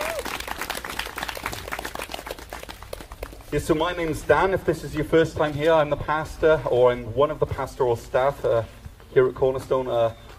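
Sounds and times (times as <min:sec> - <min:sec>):
audience applause: 0:00.0 - 0:03.5
speech: 0:03.5 - 0:10.2.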